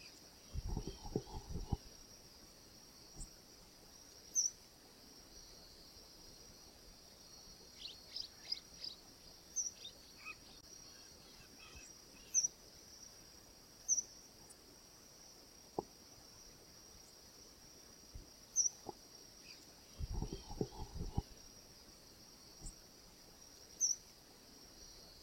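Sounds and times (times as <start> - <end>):
freirinha bird singing: 0.0 - 1.8, 7.7 - 12.6, 18.6 - 21.3, 23.8 - 24.0.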